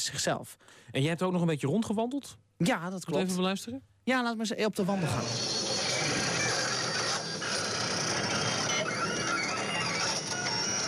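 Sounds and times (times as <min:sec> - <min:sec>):
speech: 0:00.0 - 0:05.8
machine whirring with turning gears: 0:05.1 - 0:10.8.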